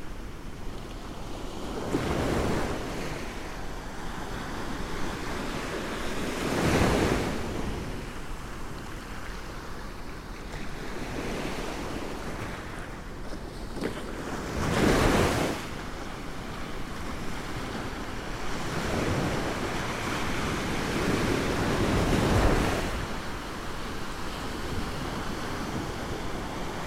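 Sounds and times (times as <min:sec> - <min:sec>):
strong waves on a sandy beach: 0:00.0 - 0:26.8.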